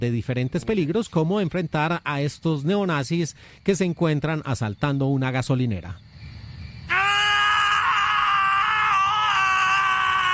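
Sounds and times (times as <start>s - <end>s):
speech: 0.0s - 6.1s
two men screaming in a film clip: 6.9s - 10.3s.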